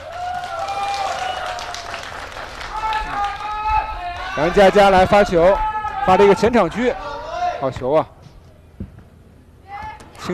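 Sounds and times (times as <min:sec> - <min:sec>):
audience applause for the players: 0:00.0 - 0:04.5
speech: 0:04.4 - 0:07.0, 0:07.6 - 0:08.2.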